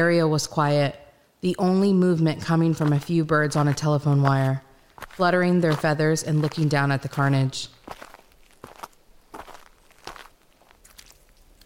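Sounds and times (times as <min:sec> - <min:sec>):
speech: 0:00.0 - 0:08.0
footsteps walking through a town: 0:02.4 - 0:11.6.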